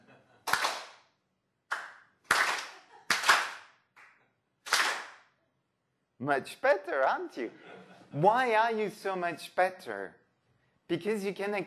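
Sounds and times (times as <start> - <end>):
hand clapping: 0.4 - 1.1, 1.7 - 5.3
speech: 6.2 - 10.2, 10.9 - 11.6.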